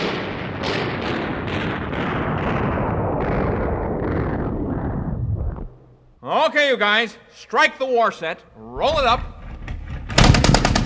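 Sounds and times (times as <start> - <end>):
gunfire sound effect: 0.0 - 4.9, 10.1 - 10.8
speech: 6.6 - 9.3.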